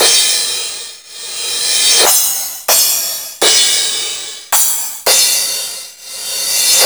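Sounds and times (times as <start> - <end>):
Roland TR-909 drum machine crash cymbal: 1.8 - 6.8.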